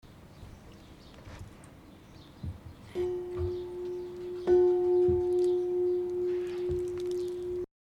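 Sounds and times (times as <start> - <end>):
bell ringing: 3.0 - 7.7.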